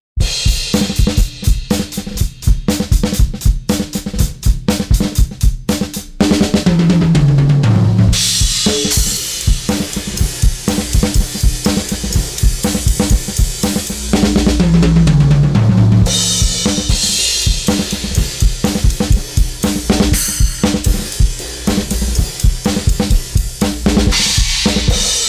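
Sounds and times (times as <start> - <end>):
drums: 0.2 - 25.2.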